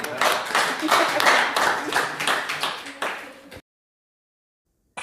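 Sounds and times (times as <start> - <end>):
laughter: 0.0 - 2.4
audience clapping: 0.0 - 3.6.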